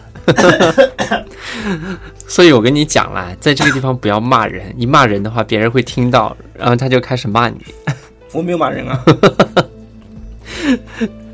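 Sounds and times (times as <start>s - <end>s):
speech: 0.2s - 9.7s, 10.7s - 11.2s
harsh raspy coughing: 0.3s - 1.3s, 3.6s - 3.9s.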